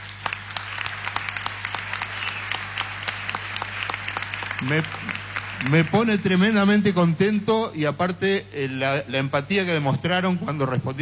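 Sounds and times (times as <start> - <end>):
audience applause: 0.0 - 7.1
speech: 4.6 - 11.0.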